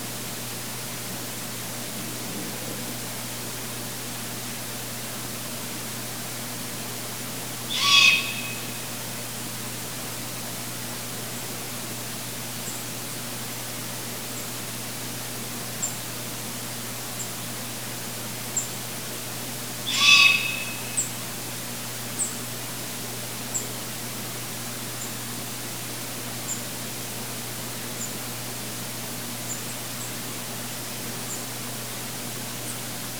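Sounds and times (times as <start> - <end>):
low steady electrical hum: 0.0 - 33.1
long-eared owl screeching: 7.7 - 9.1, 19.8 - 21.2.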